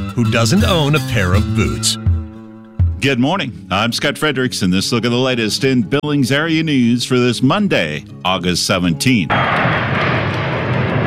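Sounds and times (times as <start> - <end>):
speech: 0.2 - 2.1, 3.0 - 9.8
Navy Blue Angels jets flying into Billings: 9.3 - 11.0.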